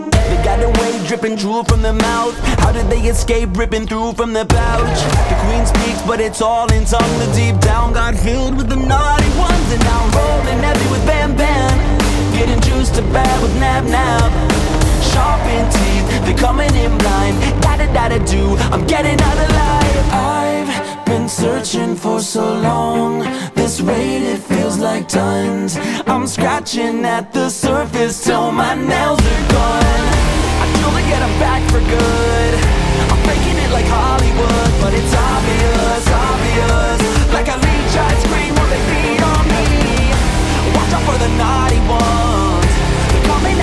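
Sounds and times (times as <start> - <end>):
rapping: 0.1 - 43.6.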